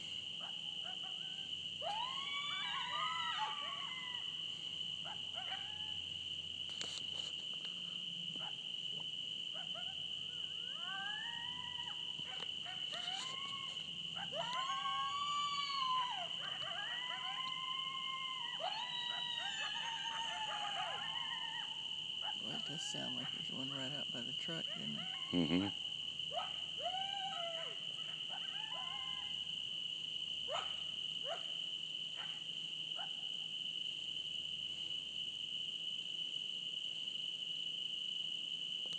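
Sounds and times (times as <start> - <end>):
coyotes: 0.0 - 38.9.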